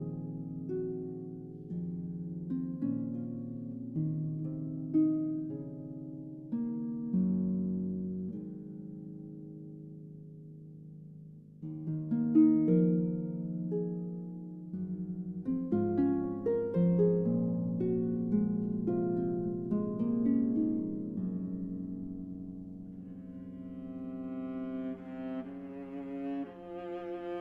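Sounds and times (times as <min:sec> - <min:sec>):
harp concerto lullaby: 0:00.0 - 0:27.3.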